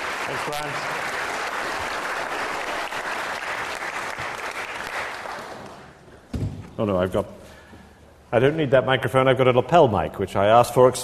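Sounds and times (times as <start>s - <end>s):
lecture audience applause welcoming a speaker: 0.0s - 6.0s
speech: 0.3s - 1.2s, 6.8s - 7.4s, 8.3s - 11.0s.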